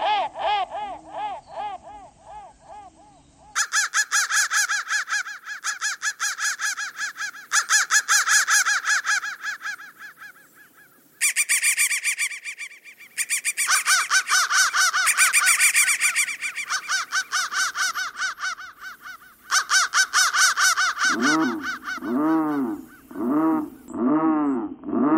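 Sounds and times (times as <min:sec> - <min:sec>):
crow giving harsh caws: 0:00.0 - 0:24.0.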